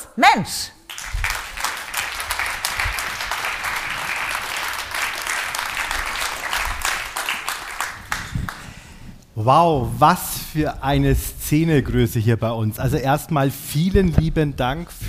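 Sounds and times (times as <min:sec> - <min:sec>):
speech: 0:00.2 - 0:00.8, 0:09.4 - 0:15.0
audience applause: 0:00.9 - 0:08.8.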